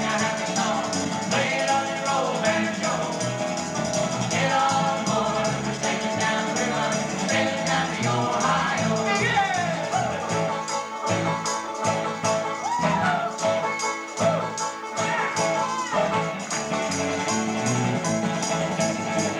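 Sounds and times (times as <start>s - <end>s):
traditional banjo song: 0.0s - 19.3s.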